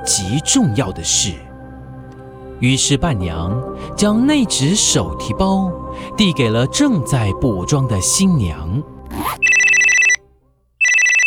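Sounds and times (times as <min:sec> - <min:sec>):
speech: 0:00.0 - 0:01.5, 0:02.6 - 0:09.5
mobile phone ringing: 0:09.2 - 0:10.2, 0:10.8 - 0:11.2.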